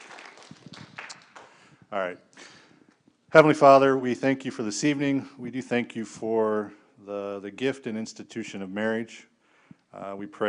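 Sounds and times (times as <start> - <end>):
soft audience applause: 0.0 - 1.6
speech: 1.9 - 2.3, 3.3 - 9.3, 9.9 - 10.4.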